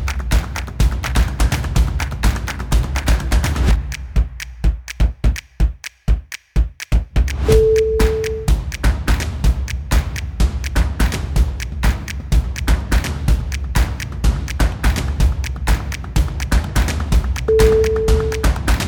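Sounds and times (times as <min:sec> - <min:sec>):
claps: 0:00.0 - 0:18.8
percussion stomps: 0:00.0 - 0:18.8.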